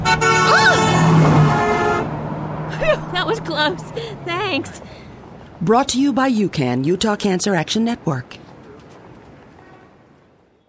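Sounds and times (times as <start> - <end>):
car horn honking: 0.0 - 2.2
speech: 3.2 - 5.0, 5.6 - 8.4.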